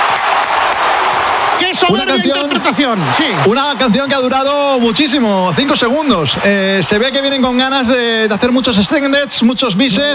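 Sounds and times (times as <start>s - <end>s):
audience ovation applause: 0.0s - 10.1s
speech: 1.9s - 10.1s.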